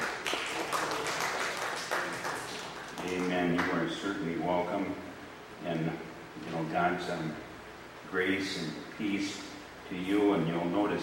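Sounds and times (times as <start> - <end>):
audience applause: 0.0 - 3.8
speech: 3.1 - 7.5, 8.1 - 11.0.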